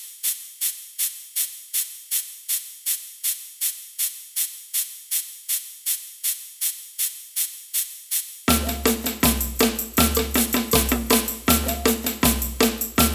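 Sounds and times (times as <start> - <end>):
ganza shaker in samba band: 0.0 - 13.1
samba band playing: 8.5 - 13.1.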